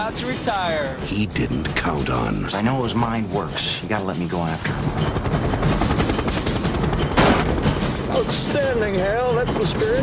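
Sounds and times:
speech: 0.1 - 5.9, 8.2 - 10.0
rapid gunfire: 5.5 - 7.9.

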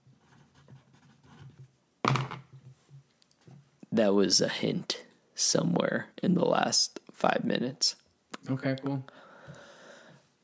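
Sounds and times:
pen scratching while writing by hand: 0.2 - 1.7
speech: 4.0 - 9.2.

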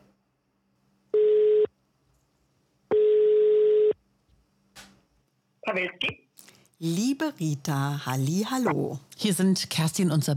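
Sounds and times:
telephone ringing tone: 1.2 - 1.7, 2.9 - 4.0
speech: 5.7 - 6.2, 6.8 - 10.3.

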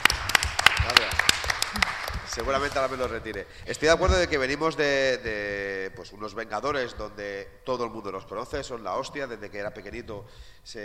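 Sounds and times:
applause: 0.0 - 3.5
speech: 2.4 - 10.8.

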